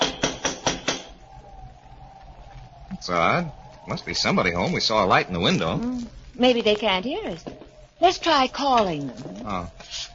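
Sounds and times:
knocking on a door: 0.0 - 1.2
speech: 3.0 - 10.0.

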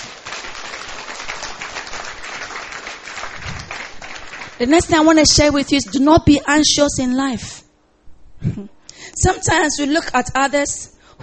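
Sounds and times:
audience clapping: 0.0 - 6.1
speech: 4.6 - 7.6, 8.4 - 11.2.

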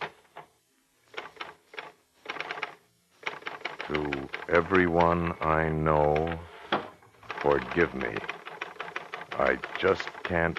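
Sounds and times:
keystrokes from a portable typewriter: 1.2 - 5.2, 6.0 - 6.4, 7.2 - 10.5
speech: 3.9 - 6.5, 7.4 - 8.3, 9.4 - 10.5.

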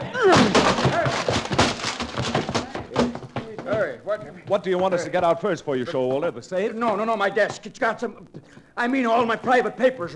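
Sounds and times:
door being bashed down: 0.1 - 3.6
speech: 4.1 - 10.1.

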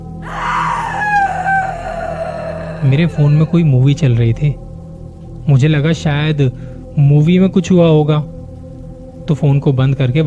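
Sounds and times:
person screaming in the night: 0.0 - 3.9
speech: 2.8 - 4.6, 5.5 - 8.3, 9.3 - 10.2.

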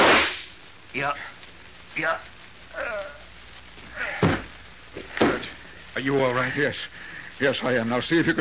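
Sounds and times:
gunshots in a radio drama: 0.0 - 0.6
speech: 1.0 - 1.4, 2.0 - 2.9, 6.0 - 8.3.

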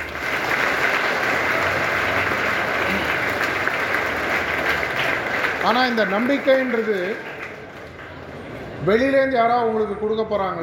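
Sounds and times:
audience applause: 0.0 - 8.3
speech: 5.6 - 7.3, 8.8 - 10.6.

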